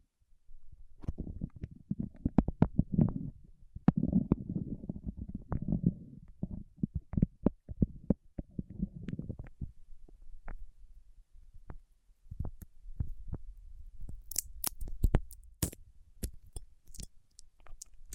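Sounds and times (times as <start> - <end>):
scattered taps and pops: 1.0 - 4.5, 5.1 - 9.7, 14.0 - 18.1
wax worked between fingertips squelching: 14.0 - 18.1.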